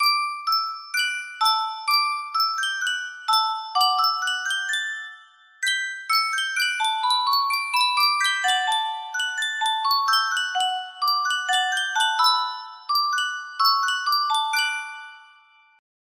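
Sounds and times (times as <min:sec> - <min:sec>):
Yunsheng music box: 0:00.0 - 0:15.8.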